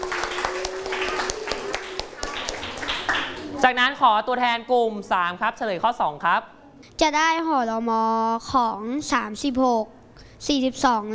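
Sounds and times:
group of children clapping in a classroom: 0:00.0 - 0:03.6
speech: 0:03.6 - 0:11.1.

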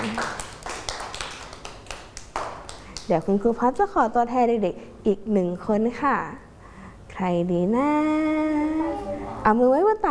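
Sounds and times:
children in a classroom clapping for a classmate: 0:00.0 - 0:03.3
speech: 0:03.1 - 0:06.5, 0:07.2 - 0:10.0.

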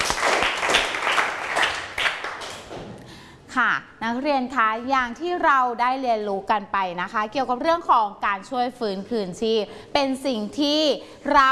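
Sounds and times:
applause from students: 0:00.0 - 0:02.6
speech: 0:03.6 - 0:11.5.

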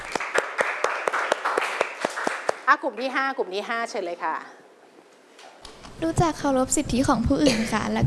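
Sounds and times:
classroom applause for presenting group: 0:00.0 - 0:03.1
speech: 0:02.7 - 0:04.6, 0:06.0 - 0:08.0.

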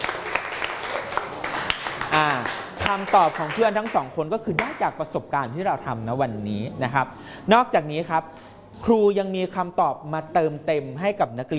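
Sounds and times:
classroom of students applauding a classmate: 0:00.0 - 0:04.0
speech: 0:02.9 - 0:11.5.

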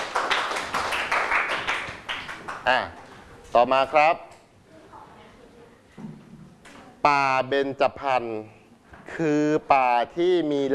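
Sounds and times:
students clapping for a classmate: 0:00.0 - 0:02.8
speech: 0:02.6 - 0:04.3, 0:07.0 - 0:08.6, 0:09.2 - 0:10.7.

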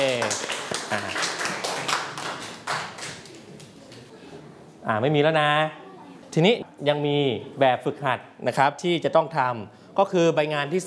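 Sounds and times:
group of children clapping their hands: 0:00.0 - 0:04.1
speech: 0:04.9 - 0:10.8.

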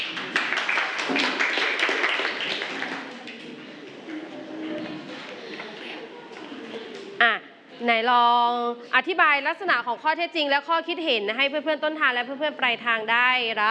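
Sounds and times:
applause: 0:00.0 - 0:03.4
speech: 0:07.2 - 0:13.7.

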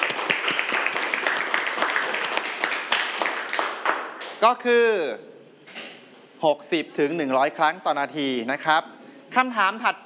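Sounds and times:
students applauding: 0:00.0 - 0:04.4
speech: 0:04.4 - 0:05.3, 0:06.4 - 0:10.0.

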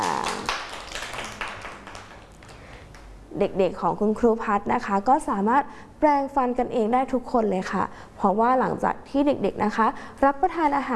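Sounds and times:
children clapping hands: 0:00.0 - 0:03.1
speech: 0:03.4 - 0:10.9.

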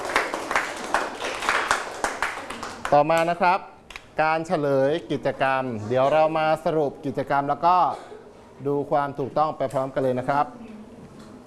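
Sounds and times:
classroom of students applauding: 0:00.0 - 0:03.3
speech: 0:02.9 - 0:10.7.

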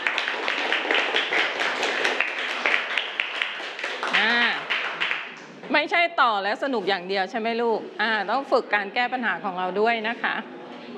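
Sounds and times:
group clapping hands: 0:00.0 - 0:05.6
speech: 0:05.8 - 0:10.6.

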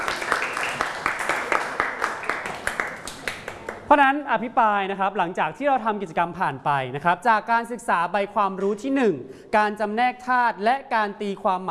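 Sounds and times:
classroom applause: 0:00.0 - 0:03.9
speech: 0:03.9 - 0:11.7.

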